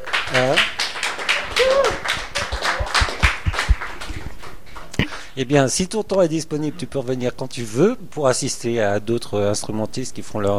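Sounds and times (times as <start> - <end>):
audience clapping hands in applause: 0.0 - 5.4
speech: 5.4 - 10.5.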